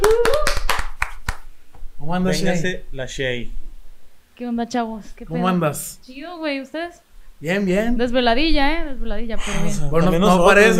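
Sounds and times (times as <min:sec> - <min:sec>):
hands clapping: 0:00.0 - 0:01.8
speech: 0:02.1 - 0:03.6, 0:04.4 - 0:10.7.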